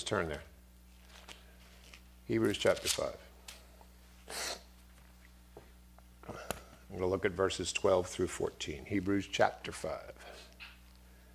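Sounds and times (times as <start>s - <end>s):
speech: 0.0s - 0.5s, 2.3s - 3.3s, 6.3s - 10.5s
low electrical hum: 0.0s - 11.3s
sneeze: 4.3s - 4.7s.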